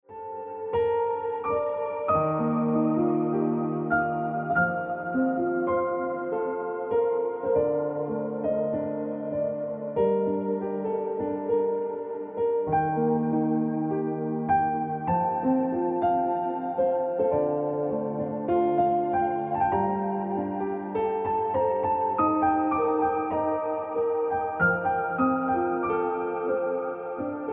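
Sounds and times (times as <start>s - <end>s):
piano ringtone music: 0.1s - 27.5s.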